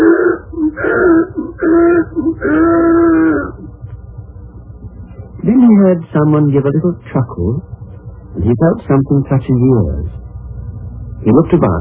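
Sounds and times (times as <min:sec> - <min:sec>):
donkey braying: 0:00.0 - 0:03.7
speech: 0:05.8 - 0:07.8, 0:08.4 - 0:10.2, 0:11.2 - 0:11.7.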